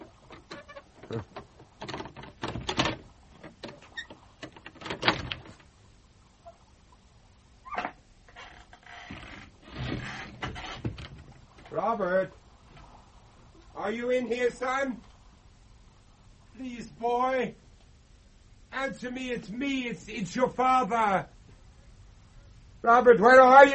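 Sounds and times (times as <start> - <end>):
locked door handle and frame rattling and clunking: 0.0 - 5.6
speech: 1.1 - 1.4, 11.8 - 12.4, 13.9 - 15.1, 16.6 - 17.6, 18.8 - 21.3, 22.8 - 23.7.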